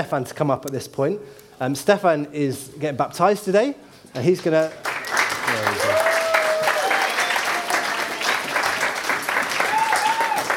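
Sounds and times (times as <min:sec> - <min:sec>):
speech: 0:00.0 - 0:06.0
audience applause: 0:04.8 - 0:10.5.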